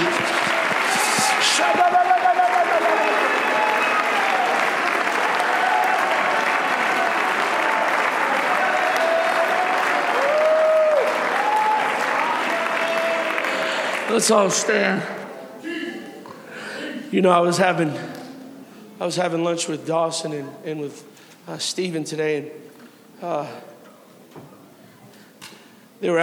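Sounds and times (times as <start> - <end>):
audience clapping: 0.0 - 15.3
speech: 14.2 - 15.2, 17.1 - 18.1, 19.0 - 23.7, 26.0 - 26.2.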